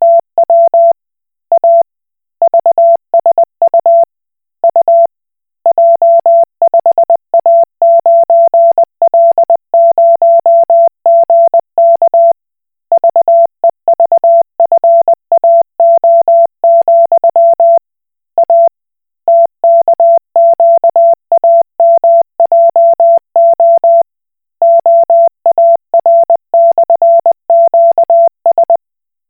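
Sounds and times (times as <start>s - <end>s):
Koch Morse code beeps: 0.0s - 1.0s, 2.4s - 4.0s, 5.7s - 12.4s, 13.0s - 17.8s, 18.4s - 18.7s, 19.3s - 24.0s, 24.6s - 28.8s.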